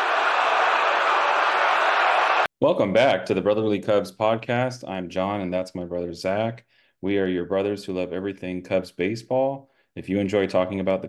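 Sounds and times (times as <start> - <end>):
baseball stadium crowd cheering after a home run: 0.0 - 2.5
speech: 2.6 - 11.0.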